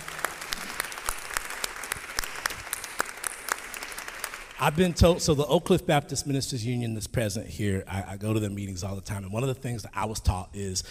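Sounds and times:
people clapping for a panel: 0.0 - 5.4
speech: 4.6 - 10.8.

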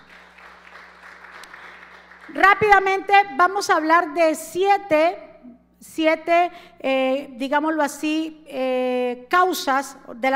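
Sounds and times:
loud audience applause: 0.0 - 2.9
speech: 2.3 - 10.3.

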